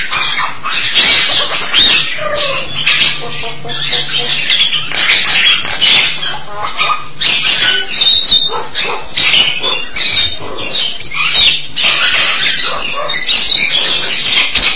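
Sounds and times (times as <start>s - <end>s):
starling chattering: 0.0s - 14.7s
low hum: 2.1s - 7.2s.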